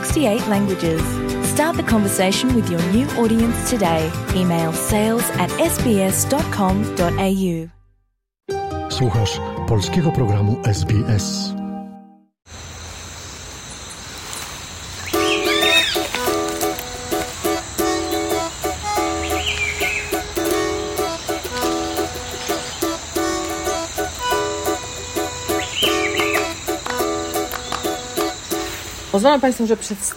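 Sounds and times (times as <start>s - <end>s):
speech: 0.2s - 7.8s, 9.0s - 11.6s, 29.2s - 30.1s
shrill insect drone in Colombian jungle: 12.5s - 29.9s
bird calls and whistles in Colombian jungle: 13.8s - 29.2s.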